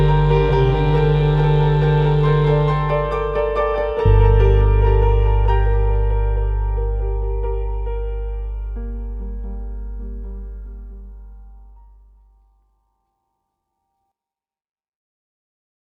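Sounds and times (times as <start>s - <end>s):
tense music: 0.0s - 11.8s.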